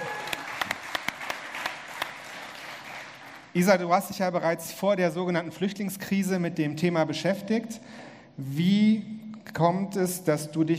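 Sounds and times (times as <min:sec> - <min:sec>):
audience applause: 0:00.0 - 0:03.5
speech: 0:03.6 - 0:10.7.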